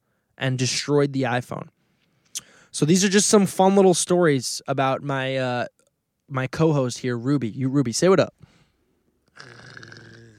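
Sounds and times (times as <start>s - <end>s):
speech: 0.4s - 1.8s, 2.8s - 8.5s
person growling like a dog: 9.4s - 10.3s.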